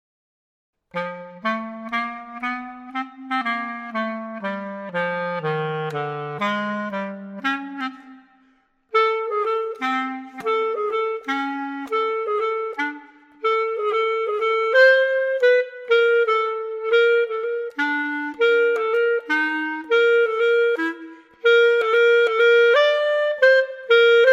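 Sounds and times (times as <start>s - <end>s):
clarinet: 0.9s - 24.3s.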